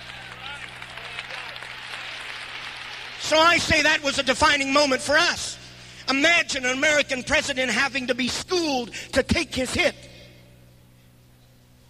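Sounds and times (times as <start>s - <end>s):
crowd voices and cheers: 0.0s - 3.4s
audience clapping hands: 0.0s - 4.0s
speech: 3.3s - 10.1s.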